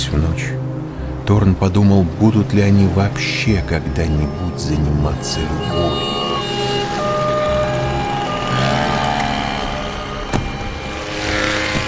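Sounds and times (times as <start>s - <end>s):
speech: 0.1s - 0.5s, 1.3s - 6.1s
car driving up and stopping: 5.6s - 11.8s.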